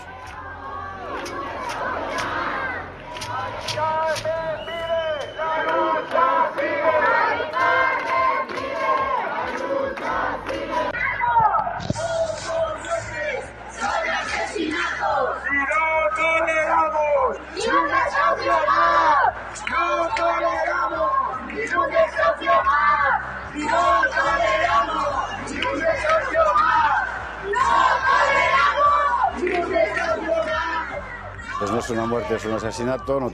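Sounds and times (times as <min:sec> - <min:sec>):
crowd of protesters shouting rhythmic chants: 0:00.0 - 0:32.6
speech: 0:31.7 - 0:33.3.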